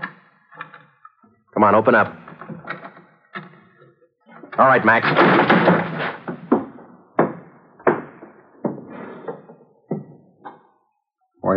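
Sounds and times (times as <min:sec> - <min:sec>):
speech: 0:01.6 - 0:02.2, 0:04.6 - 0:05.9
door being kicked down: 0:04.6 - 0:09.4.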